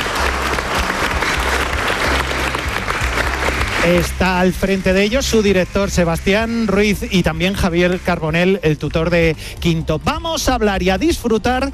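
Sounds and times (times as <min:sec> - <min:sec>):
schoolchildren applauding: 0:00.0 - 0:09.2
speech: 0:03.8 - 0:11.7.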